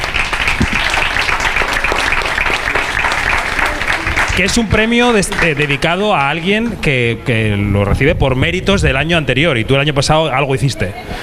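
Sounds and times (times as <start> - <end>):
applause: 0.0 - 6.8
speech: 4.4 - 11.2.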